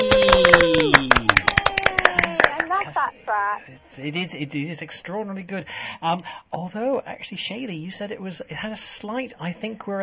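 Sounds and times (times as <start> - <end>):
applause: 0.0 - 3.0
speech: 3.5 - 10.0.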